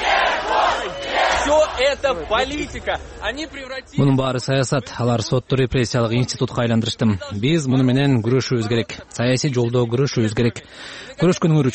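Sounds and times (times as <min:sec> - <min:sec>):
crowd chanting a name in support outside a courthouse: 0:00.0 - 0:01.8
individual voices shouting outside a courthouse: 0:00.0 - 0:02.8
speech: 0:01.5 - 0:11.7.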